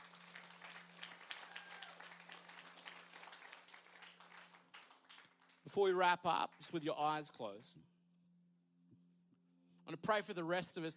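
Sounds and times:
audience applause: 0:00.0 - 0:05.6
speech: 0:05.7 - 0:07.9, 0:09.9 - 0:10.9.

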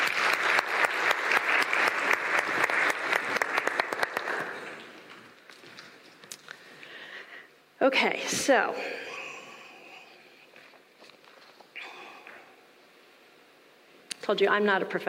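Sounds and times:
audience applause: 0:00.0 - 0:05.2
speech: 0:07.8 - 0:09.1, 0:14.3 - 0:15.0.

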